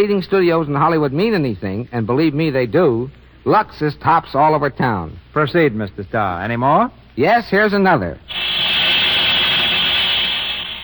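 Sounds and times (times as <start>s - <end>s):
speech: 0.0s - 8.4s
radiator hissing steam: 8.3s - 10.8s.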